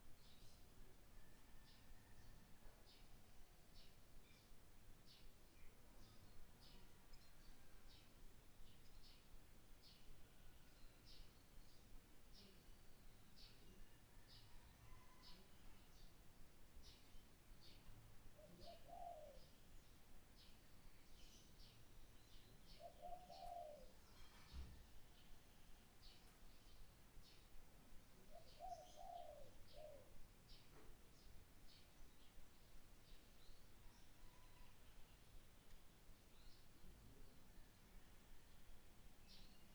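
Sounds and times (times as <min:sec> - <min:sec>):
Nyepi morning garden ambience: 0:00.0 - 0:39.7.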